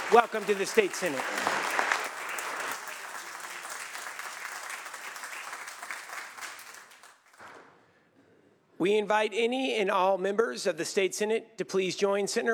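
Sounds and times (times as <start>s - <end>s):
applause in the California State Senate chamber: 0.0s - 7.6s
speech: 0.1s - 1.8s, 8.8s - 12.5s.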